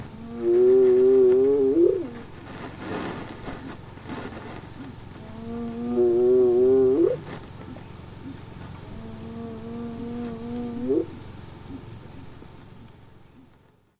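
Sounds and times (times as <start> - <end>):
hyenas: 0.1 - 2.3, 5.1 - 12.3.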